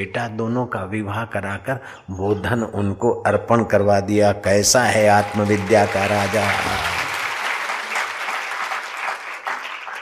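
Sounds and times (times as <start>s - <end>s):
speech: 0.0s - 7.0s
audience applause: 4.8s - 10.0s.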